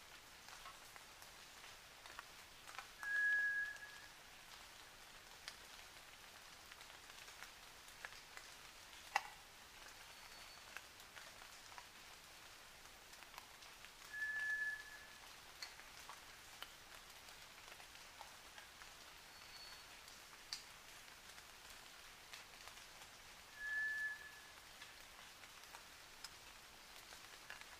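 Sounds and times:
White's thrush singing flat drawn-out whistles at night: 3.0s - 4.1s, 14.1s - 15.1s, 23.6s - 24.5s.

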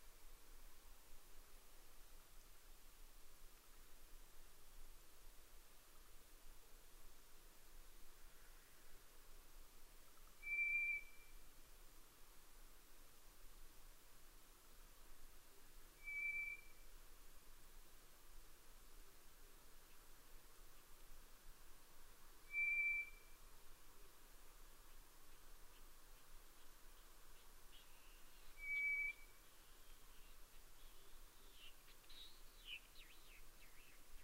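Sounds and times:
background hiss: 0.0s - 34.2s
White's thrush whistle: 10.4s - 11.4s, 16.0s - 16.8s, 22.4s - 23.4s, 27.8s - 30.3s.

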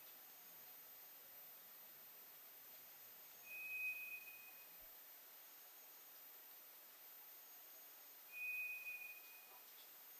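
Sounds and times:
White's thrush whistle: 3.4s - 4.8s, 8.3s - 9.7s.

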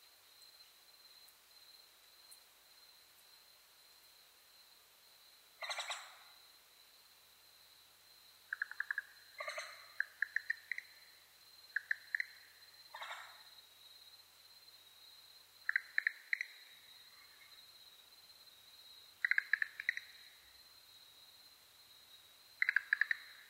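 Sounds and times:
Schlegel's green tree frog calling: 5.6s - 6.3s, 8.5s - 11.1s, 11.7s - 13.5s, 15.6s - 17.5s, 19.2s - 20.4s, 22.6s - 23.4s.

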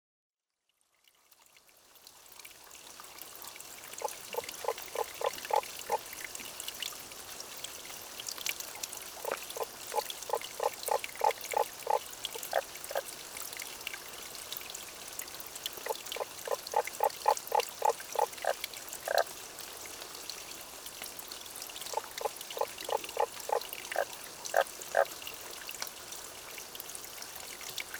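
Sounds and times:
Tago's brown frog croaking: 4.0s - 6.0s, 9.2s - 13.0s, 15.8s - 19.3s, 21.9s - 25.1s.

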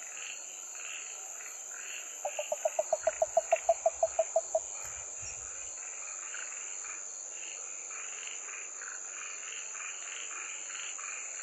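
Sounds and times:
Yaeyama harabuti gaeru frog: 2.0s - 5.8s.

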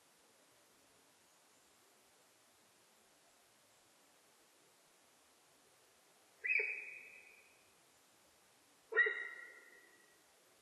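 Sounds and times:
sika deer whistling calls: 9.0s - 9.8s.

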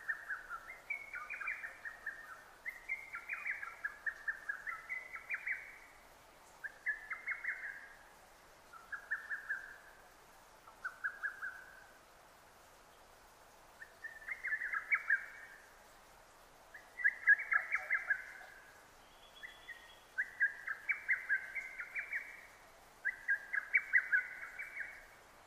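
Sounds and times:
Lesser cuckoo singing tumbling whistled phrases: 0.0s - 5.8s, 6.6s - 7.9s, 8.8s - 9.9s, 10.8s - 11.8s, 13.8s - 15.6s, 16.8s - 25.1s
background hiss: 0.0s - 25.4s.

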